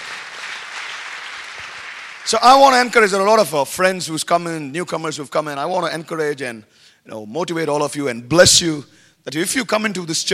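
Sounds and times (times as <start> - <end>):
audience clapping: 0.0 - 2.8
speech: 2.3 - 10.3.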